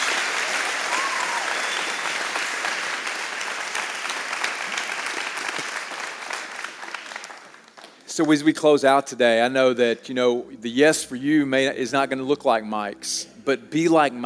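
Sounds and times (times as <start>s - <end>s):
audience applause: 0.0s - 8.1s
speech: 8.2s - 14.2s.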